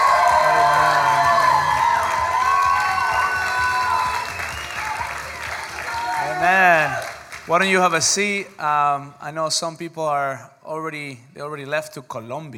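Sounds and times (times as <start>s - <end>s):
audience applause: 0.0s - 8.2s
speech: 7.5s - 12.5s.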